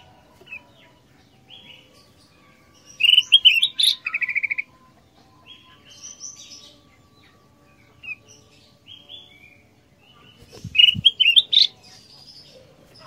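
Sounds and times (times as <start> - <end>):
ruby-throated bulbul song: 0.0 - 13.0.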